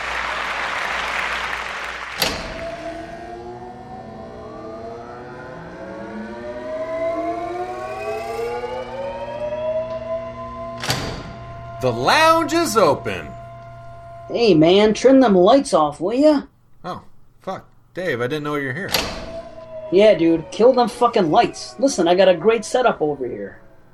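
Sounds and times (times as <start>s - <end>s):
live studio audience applause: 0.0s - 2.7s
layered siren-like tones: 2.3s - 14.6s, 19.2s - 23.9s
speech: 11.8s - 13.4s, 14.3s - 19.2s, 19.9s - 23.6s.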